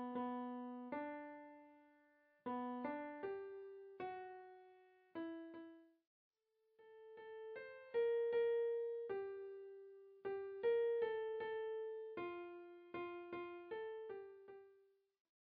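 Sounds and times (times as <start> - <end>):
piano lullabies: 0.0 - 5.9, 6.8 - 14.8.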